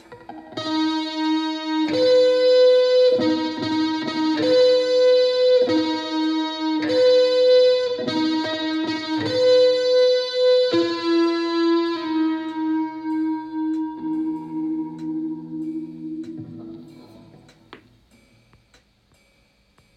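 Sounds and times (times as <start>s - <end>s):
small guitar riff without distortion: 0.0s - 18.0s.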